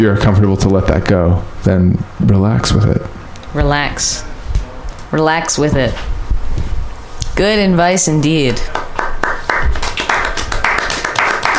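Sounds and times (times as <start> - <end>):
speech: 0.0 - 4.3, 5.1 - 6.7, 7.4 - 8.8
modest applause from studio audience: 8.5 - 11.5.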